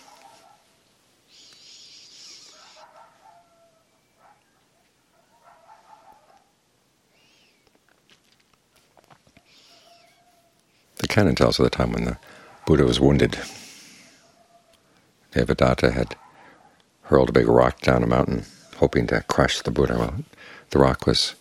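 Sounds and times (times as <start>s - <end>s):
coyotes calling at night: 0.0s - 7.7s, 8.8s - 10.9s, 11.6s - 15.2s, 15.8s - 17.0s, 18.1s - 19.5s
speech: 11.2s - 13.6s, 15.4s - 16.2s, 17.1s - 21.3s.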